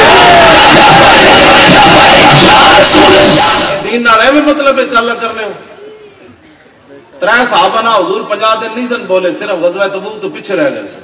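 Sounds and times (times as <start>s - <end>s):
large crowd shouting the Labbaik slogan at a religious rally: 0.0s - 3.9s
speech: 4.5s - 5.7s, 7.2s - 11.0s.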